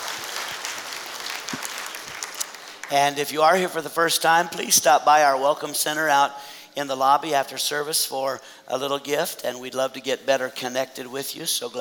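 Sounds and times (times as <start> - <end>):
First Assembly church congregation clapping to welcome a visitor: 0.0 - 3.7
speech: 2.9 - 11.7.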